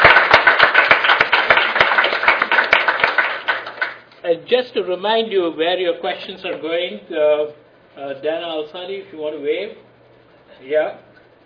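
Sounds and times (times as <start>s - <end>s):
audience applause: 0.0s - 4.1s
speech: 4.5s - 9.9s, 10.6s - 11.4s.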